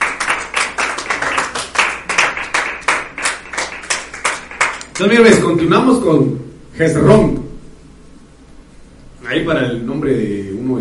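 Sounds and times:
audience clapping in rhythm: 0.0s - 5.3s
speech: 5.0s - 7.5s, 9.3s - 10.7s.

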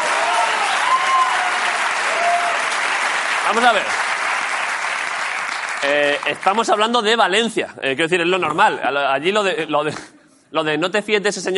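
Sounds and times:
faint whistles and cheers: 0.0s - 2.8s
sustained crowd applause: 0.0s - 6.7s
speech: 3.5s - 4.1s, 5.8s - 11.5s.

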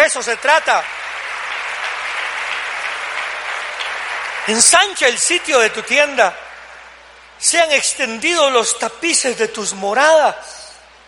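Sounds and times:
loud sustained audience applause: 0.0s - 5.8s
speech: 0.1s - 1.0s, 4.5s - 6.4s, 7.4s - 10.6s.

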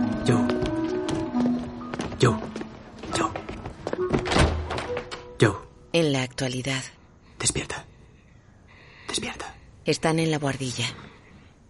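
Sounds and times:
footsteps climbing entrance stairs of a boarding house: 0.0s - 5.3s
sustained music: 0.0s - 5.4s
speech: 0.2s - 0.5s, 2.2s - 2.5s, 6.4s - 7.9s, 9.2s - 11.1s.

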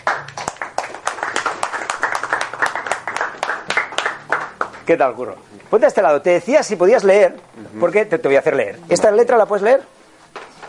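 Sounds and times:
audience applause: 0.0s - 4.9s
speech: 4.9s - 10.0s.

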